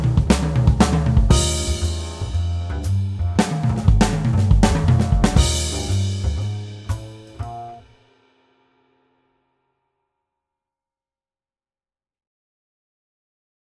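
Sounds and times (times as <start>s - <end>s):
swing drum fills: 0.0s - 8.4s.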